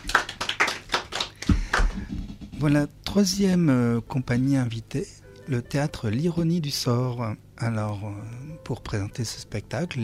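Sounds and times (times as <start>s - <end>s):
scattered handclapping from a theatre audience: 0.0s - 2.5s
speech: 2.6s - 10.0s.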